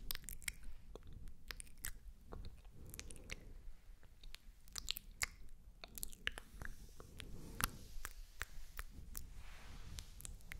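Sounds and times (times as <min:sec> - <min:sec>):
wet mouth sounds: 0:00.0 - 0:10.5
slick oily hand rubbing and squishing: 0:06.4 - 0:10.5.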